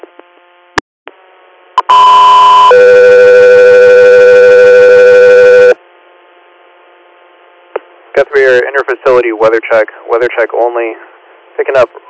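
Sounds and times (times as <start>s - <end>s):
radio dispatch alert tones: 1.8s - 5.8s
speech: 8.3s - 12.0s.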